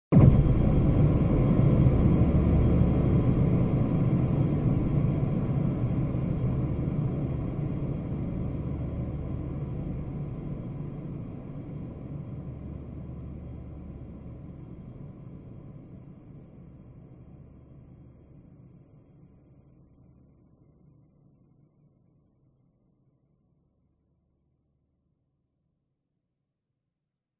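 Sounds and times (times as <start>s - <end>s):
soft science fiction impact with long reverb: 0.1s - 14.9s.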